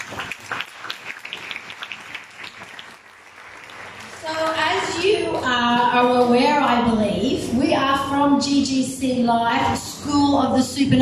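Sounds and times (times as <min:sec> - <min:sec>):
audience clapping: 0:00.0 - 0:06.6
speech: 0:05.4 - 0:10.9.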